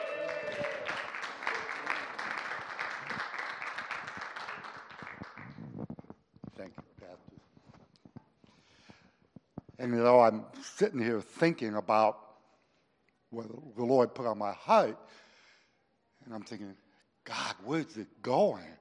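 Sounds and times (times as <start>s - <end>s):
crowd clapping and cheering: 0.0s - 5.7s
speech: 9.8s - 12.2s, 13.4s - 15.2s, 16.3s - 18.7s.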